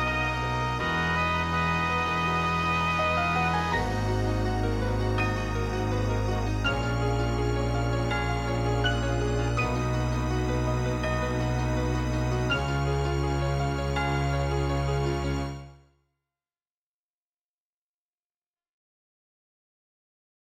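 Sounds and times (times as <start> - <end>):
MIDI theme music: 0.0 - 15.7.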